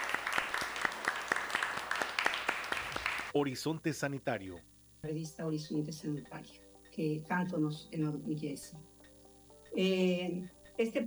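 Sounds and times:
live audience applause: 0:00.0 - 0:03.4
speech: 0:03.4 - 0:08.9, 0:09.7 - 0:11.0.

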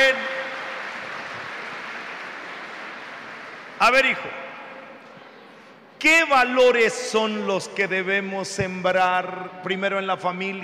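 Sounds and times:
audience applause: 0:00.0 - 0:03.8
speech: 0:03.8 - 0:04.4, 0:06.0 - 0:10.6.

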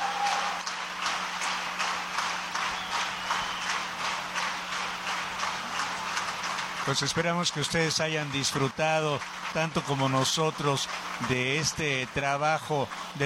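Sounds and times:
concert audience applause: 0:00.0 - 0:13.2
speech: 0:06.9 - 0:13.2.

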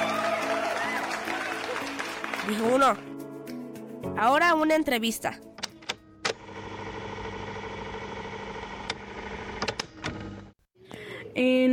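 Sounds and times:
audience applause: 0:00.0 - 0:02.9
speech: 0:02.4 - 0:03.1, 0:04.1 - 0:05.5, 0:11.4 - 0:11.7.

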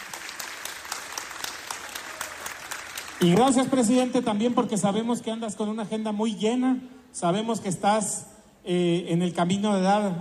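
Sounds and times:
audience applause: 0:00.0 - 0:03.6
speech: 0:03.2 - 0:10.1.

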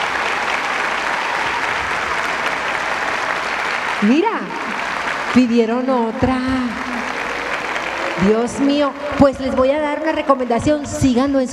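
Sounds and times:
audience applause: 0:00.0 - 0:11.5
speech: 0:04.0 - 0:07.0, 0:08.2 - 0:11.5.

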